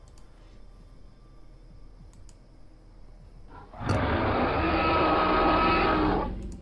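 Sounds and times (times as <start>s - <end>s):
dinosaur roar in jungle: 3.5s - 6.5s.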